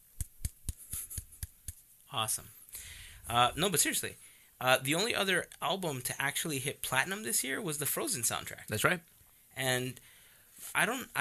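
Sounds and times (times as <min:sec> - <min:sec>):
single pair of hands clapping: 0:00.0 - 0:01.8
speech: 0:02.1 - 0:02.6, 0:03.3 - 0:11.1.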